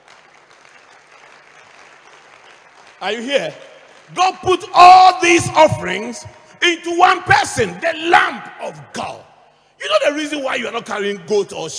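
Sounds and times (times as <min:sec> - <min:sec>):
audience clapping: 0:00.0 - 0:06.0
speech: 0:03.0 - 0:09.2, 0:09.8 - 0:11.7.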